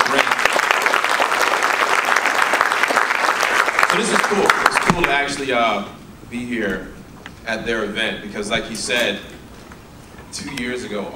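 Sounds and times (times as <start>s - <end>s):
audience applause: 0.0s - 5.3s
speech: 4.0s - 9.3s, 10.3s - 11.1s.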